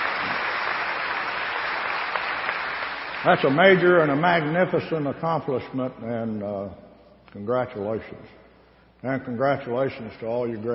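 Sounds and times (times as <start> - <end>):
crowd applause: 0.0 - 3.6
speech: 3.2 - 8.4, 9.0 - 10.7.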